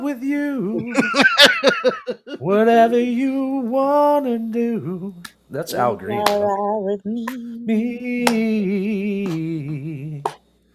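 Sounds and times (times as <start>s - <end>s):
speech: 0.0s - 10.4s
laughter: 0.8s - 2.5s
slow clap: 6.2s - 6.5s, 8.2s - 8.5s.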